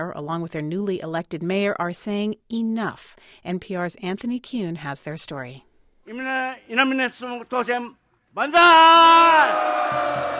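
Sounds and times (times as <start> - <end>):
speech: 0.0 - 10.3
crowd of supporters cheering for mayor-elect Susumu Inamine: 8.4 - 10.3.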